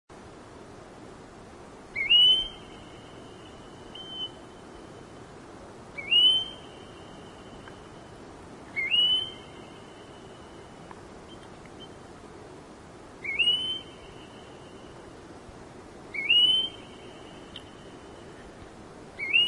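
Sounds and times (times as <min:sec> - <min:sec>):
faint hiss: 0:00.1 - 0:19.4
red-browed goldfinch whistled calls: 0:02.0 - 0:04.8, 0:06.0 - 0:07.8, 0:08.7 - 0:10.7, 0:13.2 - 0:15.0, 0:16.1 - 0:18.2, 0:19.2 - 0:19.4.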